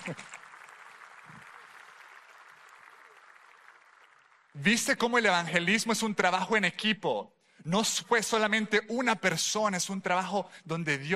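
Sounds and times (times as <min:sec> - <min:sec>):
audience applause: 0:00.0 - 0:05.6
speech: 0:00.1 - 0:00.3, 0:04.6 - 0:11.1.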